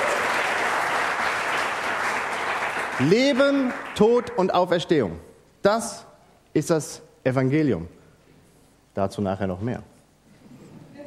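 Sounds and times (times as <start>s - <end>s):
audience applause for young people: 0.0s - 4.4s
speech: 3.0s - 8.0s, 9.0s - 9.9s.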